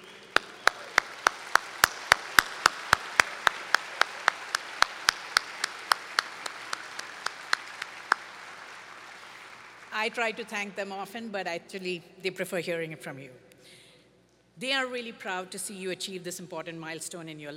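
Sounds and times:
audience applause for faculty: 0.0s - 10.2s
speech: 10.0s - 13.8s, 14.6s - 17.5s.

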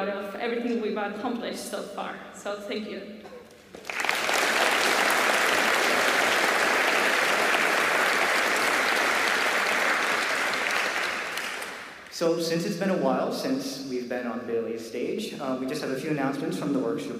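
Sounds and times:
speech: 0.4s - 4.0s, 12.2s - 17.1s
audience applause for the orchestra: 3.8s - 12.1s.

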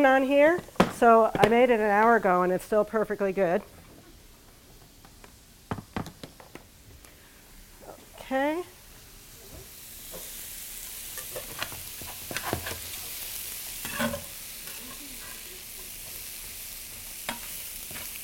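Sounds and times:
speech: 0.0s - 3.8s, 8.3s - 8.7s
Kung Pao chicken ingredients sizzling in a pan: 7.2s - 18.2s.

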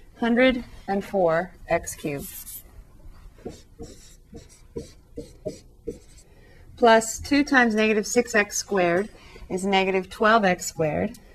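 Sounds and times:
speech: 0.2s - 2.5s, 3.4s - 6.0s, 6.8s - 11.2s
pen strokes writing a calculus product rule example: 2.0s - 2.6s, 3.4s - 6.2s.

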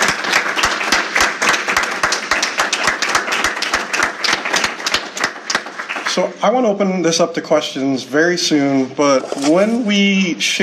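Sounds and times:
audience round of applause: 0.0s - 6.6s
speech: 6.1s - 10.6s.

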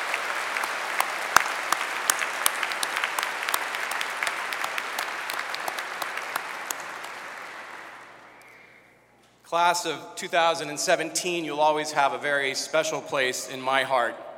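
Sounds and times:
audience applause: 0.0s - 8.5s
speech: 9.5s - 14.3s.

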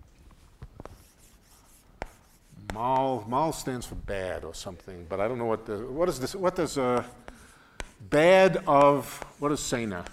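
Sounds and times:
pen writing a name by hand on paper: 0.8s - 2.8s, 7.0s - 10.1s
speech: 2.8s - 7.2s, 8.0s - 10.1s.

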